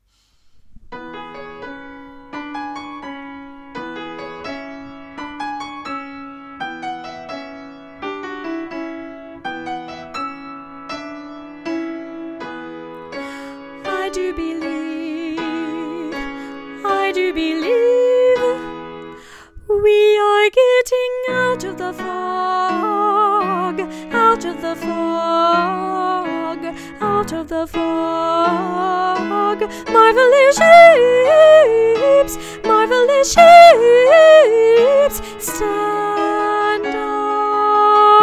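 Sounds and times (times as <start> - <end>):
alto voice singing: 13.8 - 18.7, 19.8 - 38.2.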